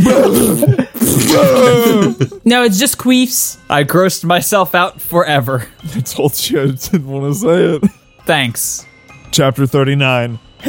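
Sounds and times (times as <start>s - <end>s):
cough: 0.0s - 2.3s
speech: 0.0s - 10.6s.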